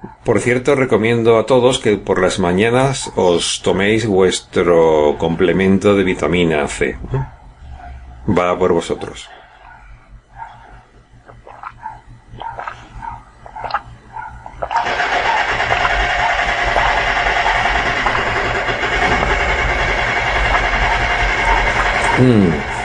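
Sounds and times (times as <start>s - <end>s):
speech: 0.0s - 7.3s, 8.2s - 9.4s, 22.2s - 22.7s
jackhammer: 14.8s - 22.8s.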